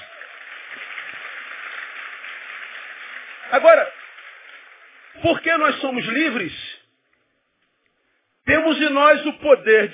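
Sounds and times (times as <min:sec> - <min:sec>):
applause: 0:00.0 - 0:06.2
speech: 0:03.5 - 0:04.0, 0:05.2 - 0:06.8, 0:08.5 - 0:09.9.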